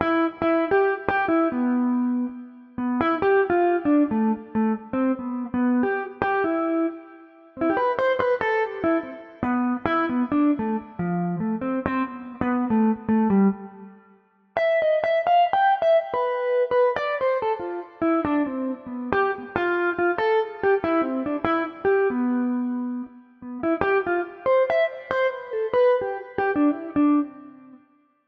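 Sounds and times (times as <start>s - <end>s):
guitar solo: 0.0s - 27.8s.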